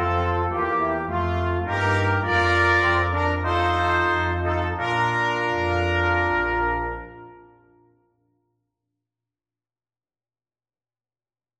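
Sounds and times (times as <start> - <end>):
brass quintet playing an anthem: 0.0 - 8.0.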